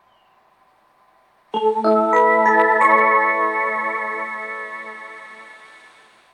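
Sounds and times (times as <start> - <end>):
local train stopping at Oiwake: 1.6 - 6.2.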